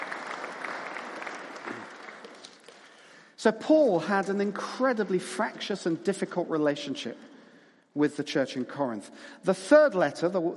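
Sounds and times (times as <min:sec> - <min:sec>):
audience applause: 0:00.0 - 0:02.8
speech: 0:03.4 - 0:07.3, 0:08.0 - 0:10.5.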